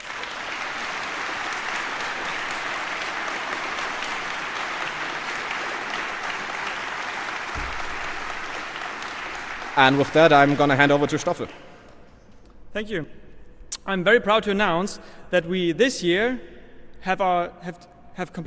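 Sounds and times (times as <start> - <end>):
audience applause: 0.0 - 11.5
speech: 9.8 - 11.6, 12.7 - 13.2, 13.8 - 18.4.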